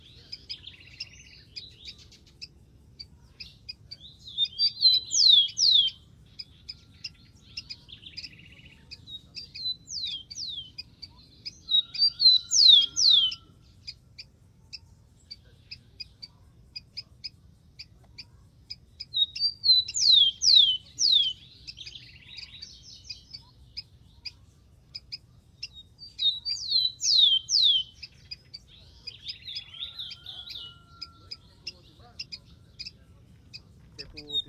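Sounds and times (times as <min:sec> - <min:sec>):
rufous-collared sparrow whistled song: 0:00.0 - 0:34.4.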